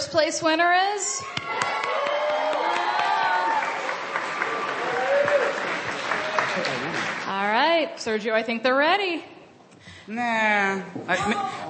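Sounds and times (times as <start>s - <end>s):
speech: 0.1s - 2.4s, 7.5s - 9.4s, 10.1s - 11.6s
audience cheering: 1.2s - 7.3s.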